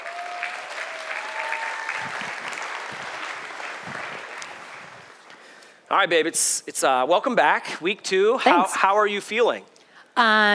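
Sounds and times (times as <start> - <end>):
congregation applause welcoming a woman to the stage during a church service: 0.0 - 5.6
speech: 5.9 - 10.5.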